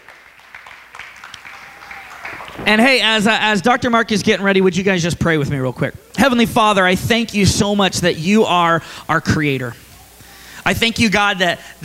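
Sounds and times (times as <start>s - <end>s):
faint cheering: 0.0s - 2.8s
audience applause: 0.0s - 3.0s
speech: 2.6s - 9.8s, 10.7s - 11.8s.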